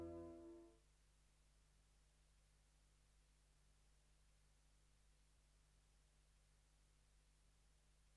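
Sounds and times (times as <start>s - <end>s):
saxophone: 0.0s - 0.6s.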